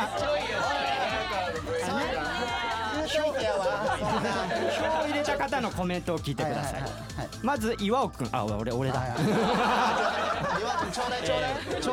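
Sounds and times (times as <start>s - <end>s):
audience booing: 0.0s - 5.0s
laughter: 0.0s - 7.4s, 9.0s - 11.9s
speech: 3.1s - 11.9s.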